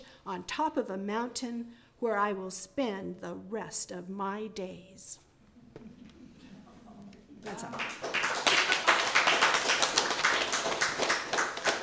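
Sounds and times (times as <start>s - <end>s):
speech: 0.2s - 5.2s, 7.4s - 8.1s
audience applauding: 7.4s - 11.8s.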